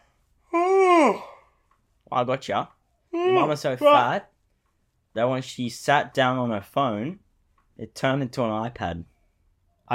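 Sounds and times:
person yawning: 0.5s - 1.5s
speech: 2.1s - 4.3s, 5.2s - 7.2s, 7.8s - 9.1s.

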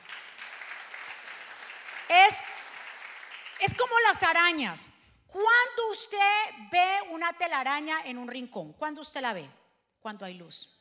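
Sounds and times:
audience applause: 0.0s - 3.7s
speech: 2.1s - 2.6s, 3.6s - 10.7s.

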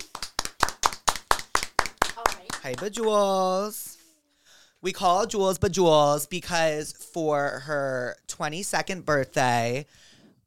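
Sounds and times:
audience applause: 0.0s - 3.2s
speech: 2.6s - 3.9s, 4.8s - 10.1s.

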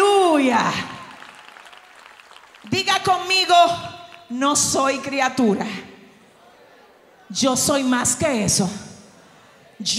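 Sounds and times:
speech: 0.6s - 1.0s, 2.7s - 5.9s, 7.3s - 8.9s, 9.8s - 9.9s
audience applause: 0.9s - 3.2s.

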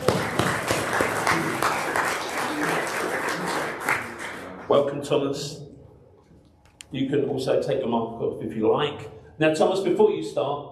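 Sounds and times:
church congregation clapping: 0.0s - 5.2s
speech: 4.7s - 5.6s, 6.9s - 10.6s.

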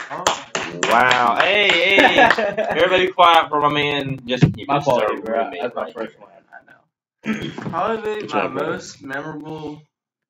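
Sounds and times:
round of applause: 0.0s - 2.8s
speech: 0.1s - 6.4s, 7.2s - 9.9s
laughter: 0.2s - 6.1s.

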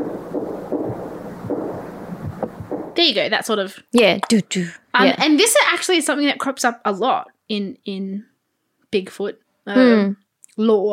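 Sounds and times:
tree knocking taps on wood: 0.0s - 3.0s
speech: 3.0s - 8.3s, 8.9s - 10.9s.

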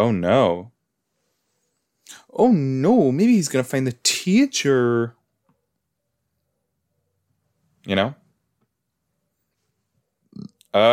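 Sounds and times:
speech: 0.0s - 0.7s, 2.3s - 5.2s, 7.8s - 8.2s, 10.4s - 10.9s
person burping after soda: 10.3s - 10.9s.

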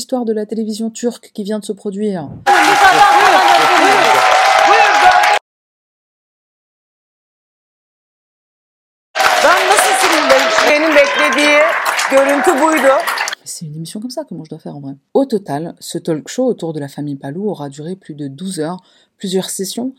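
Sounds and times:
speech: 0.1s - 4.0s, 12.4s - 19.9s
studio audience applauding: 2.5s - 5.4s, 9.2s - 13.4s.

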